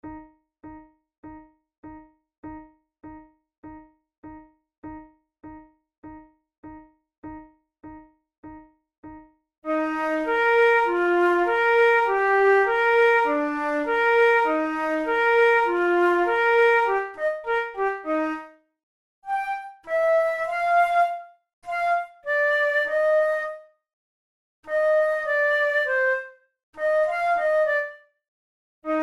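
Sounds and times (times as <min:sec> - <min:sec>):
flute method exercise: 0:09.7 - 0:18.6, 0:19.2 - 0:23.7, 0:24.6 - 0:28.1, 0:28.9 - 0:29.0.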